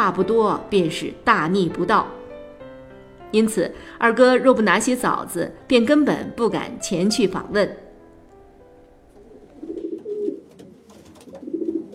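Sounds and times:
speech: 0.0 - 2.2, 3.3 - 7.8
pigeons cooing: 9.1 - 11.9.

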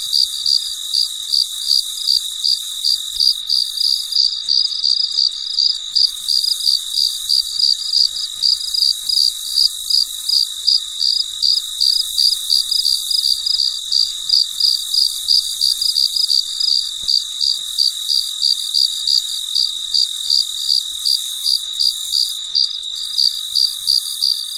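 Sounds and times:
cricket chirping: 0.0 - 24.5
high insect hum: 0.0 - 24.5.

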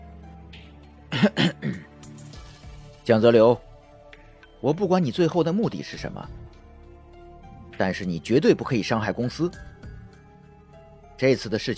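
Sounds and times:
awkward coughing: 1.1 - 1.9
speech: 1.2 - 1.9, 3.1 - 3.7, 4.6 - 6.4, 7.8 - 9.7, 11.2 - 11.7.

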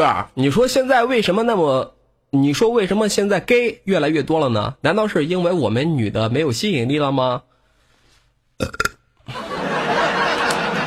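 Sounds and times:
speech: 0.0 - 7.5, 8.6 - 9.4
burping: 8.6 - 9.1
laughter: 9.3 - 10.8.

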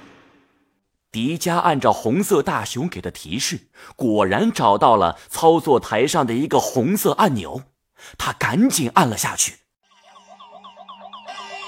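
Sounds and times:
speech: 1.2 - 9.6
alarm siren in a room: 9.8 - 11.6.

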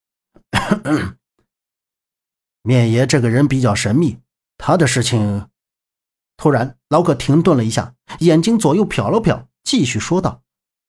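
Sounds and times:
throat clearing: 0.4 - 1.2
speech: 0.6 - 1.2, 2.6 - 5.5, 6.4 - 10.4.

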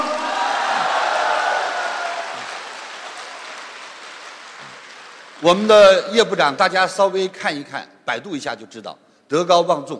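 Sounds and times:
audience applause: 0.0 - 5.7
speech: 5.4 - 9.9.

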